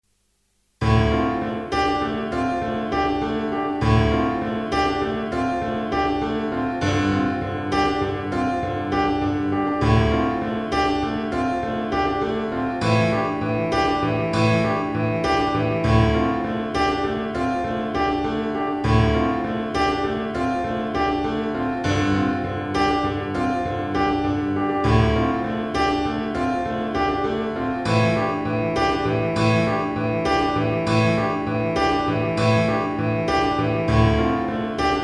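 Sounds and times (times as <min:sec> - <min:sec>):
pop piano: 0:00.8 - 0:35.0.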